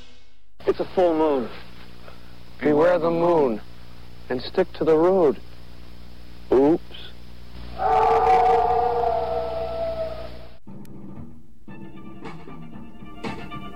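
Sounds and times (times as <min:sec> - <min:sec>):
speech: 0:00.7 - 0:01.6, 0:02.6 - 0:03.7, 0:04.3 - 0:05.5, 0:06.5 - 0:07.1
wolf howling: 0:07.7 - 0:10.6.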